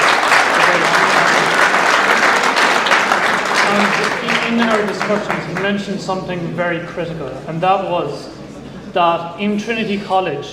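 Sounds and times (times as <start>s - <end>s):
audience applause welcoming a guest: 0.0s - 6.1s
speech: 4.0s - 10.5s.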